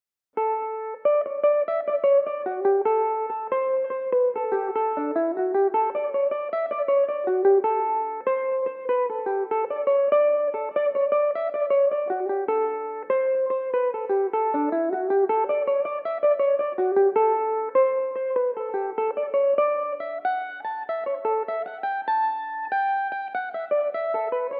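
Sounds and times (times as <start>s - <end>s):
Irish mandolin playing in D major: 0.8s - 24.5s.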